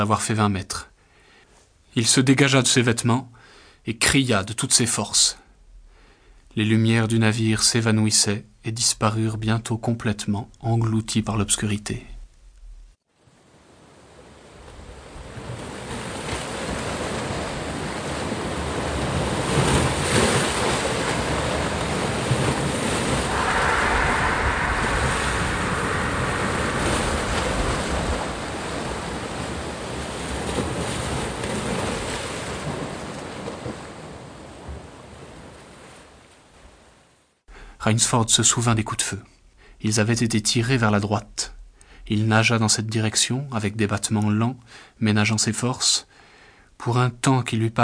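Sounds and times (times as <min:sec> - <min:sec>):
speech: 0:00.0 - 0:00.9, 0:02.0 - 0:05.4, 0:06.6 - 0:12.2, 0:37.9 - 0:46.2, 0:46.8 - 0:47.8
sea waves at night: 0:13.3 - 0:36.2.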